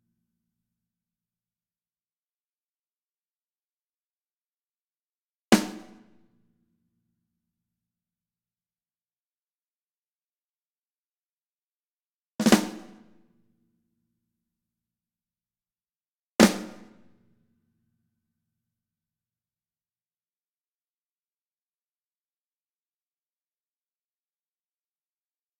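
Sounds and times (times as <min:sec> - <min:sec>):
snare drum: 0:05.6 - 0:06.2, 0:12.4 - 0:13.2, 0:16.4 - 0:17.1.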